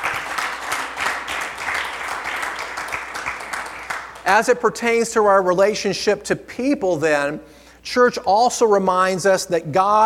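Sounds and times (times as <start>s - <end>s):
audience clapping: 0.0s - 4.6s
speech: 4.2s - 10.0s.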